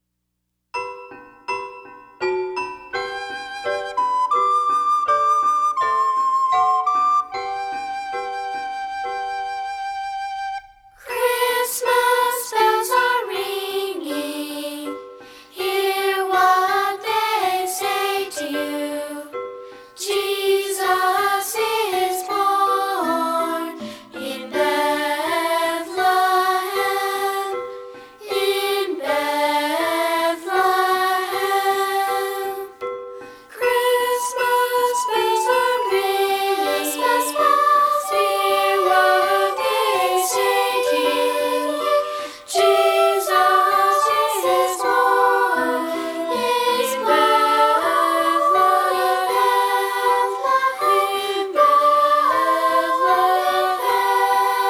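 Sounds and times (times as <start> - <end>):
christmas song with words and music: 0.8 - 54.6.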